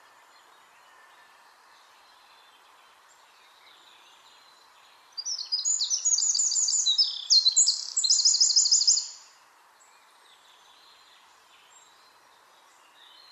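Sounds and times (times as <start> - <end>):
Eurasian wren Troglodytes troglodytes song: 0.0 - 13.3.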